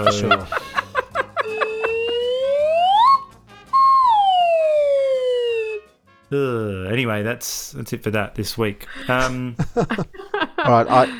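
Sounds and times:
speech: 0:00.0 - 0:00.6, 0:06.3 - 0:11.1
laughter: 0:00.0 - 0:03.0, 0:08.8 - 0:11.1
slide whistle: 0:01.4 - 0:06.0.

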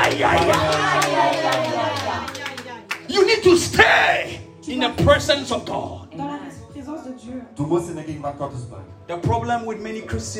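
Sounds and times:
crowd clapping: 0:00.0 - 0:03.4
speech: 0:00.2 - 0:00.7, 0:04.8 - 0:06.0, 0:07.3 - 0:10.3.

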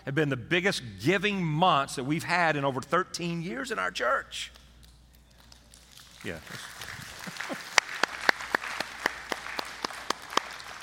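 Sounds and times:
speech: 0:00.0 - 0:04.6, 0:06.2 - 0:06.8
thin scattered audience applause: 0:05.9 - 0:10.8.

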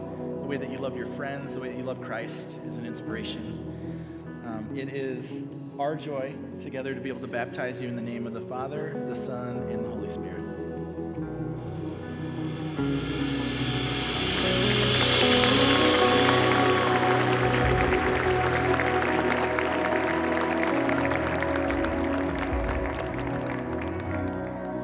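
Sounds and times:
speech: 0:00.5 - 0:03.8, 0:04.5 - 0:10.6
low sustained hum: 0:11.6 - 0:24.8
audience applauding after baptism: 0:13.5 - 0:24.8.

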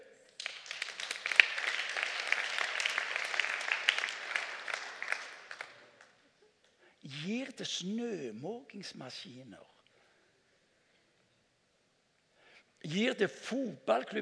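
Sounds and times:
audience clapping: 0:00.3 - 0:06.2
speech: 0:07.2 - 0:09.7, 0:12.9 - 0:14.2.

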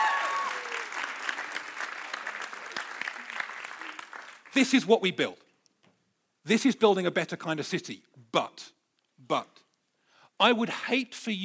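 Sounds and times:
faint whoops: 0:00.0 - 0:01.0
crowd applauding volunteers: 0:00.0 - 0:04.6
speech: 0:04.6 - 0:05.4, 0:06.4 - 0:09.6, 0:10.4 - 0:11.4.

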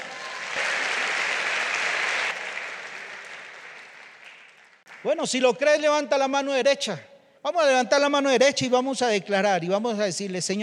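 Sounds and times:
audience applause: 0:00.0 - 0:05.1
speech: 0:05.0 - 0:10.6.

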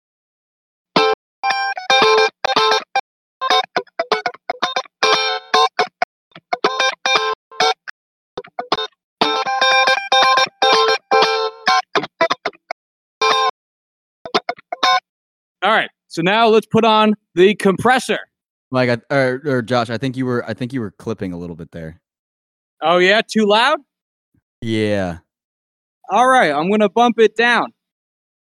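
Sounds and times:
distorted electric guitar riff through effects: 0:01.0 - 0:13.5, 0:24.6 - 0:25.2
speech: 0:15.7 - 0:22.0, 0:22.8 - 0:23.9, 0:24.6 - 0:25.2, 0:26.1 - 0:27.8.

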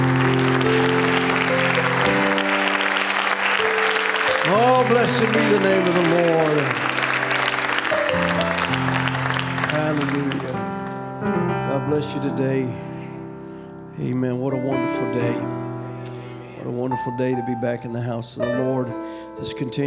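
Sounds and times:
audience clapping hands in praise: 0:00.0 - 0:11.1
speech: 0:04.9 - 0:06.9, 0:11.8 - 0:12.9, 0:14.0 - 0:15.7, 0:16.6 - 0:19.8.

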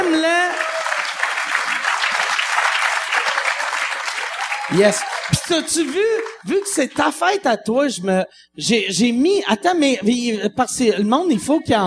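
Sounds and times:
audience applause: 0:00.0 - 0:07.1
speech: 0:04.7 - 0:11.8.

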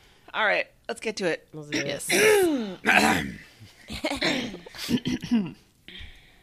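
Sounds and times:
speech: 0:00.4 - 0:05.6
woman clearing her throat delicately: 0:01.7 - 0:03.4, 0:04.0 - 0:06.1.

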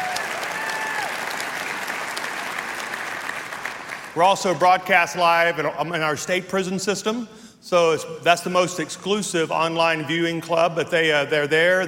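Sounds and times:
church congregation applauding in welcome on Easter Sunday: 0:00.0 - 0:04.5
speech: 0:04.2 - 0:11.8.

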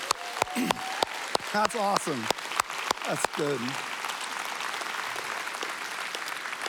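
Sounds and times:
audience cheering: 0:00.0 - 0:02.3, 0:03.0 - 0:06.6
audience applauding: 0:00.0 - 0:06.6
speech: 0:00.6 - 0:00.9, 0:01.5 - 0:02.4, 0:03.1 - 0:03.9.

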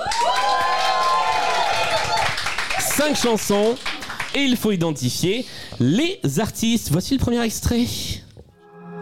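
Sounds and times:
audience at a live music quiz show whooping: 0:00.0 - 0:03.3
speech: 0:03.0 - 0:08.1.

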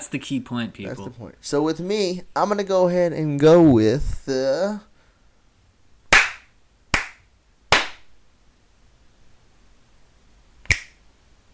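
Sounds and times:
speech: 0:00.1 - 0:04.9
finger snap: 0:06.1 - 0:08.0, 0:10.6 - 0:11.0
hand claps: 0:06.1 - 0:08.1, 0:10.7 - 0:11.0.

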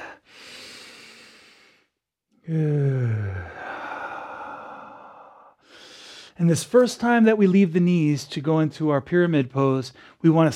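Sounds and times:
deep breathing during a heated deep-flow yoga class: 0:00.0 - 0:06.4
speech: 0:02.5 - 0:02.9, 0:06.4 - 0:10.5.

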